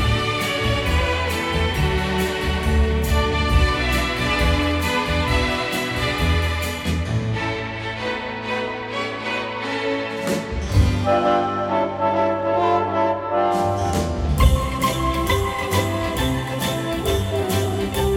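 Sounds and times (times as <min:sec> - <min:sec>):
strings playing: 0:00.0 - 0:13.0, 0:13.8 - 0:18.1.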